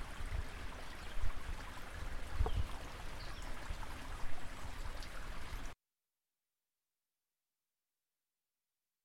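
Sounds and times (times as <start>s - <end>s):
Welsh stream flowing: 0.0s - 5.8s.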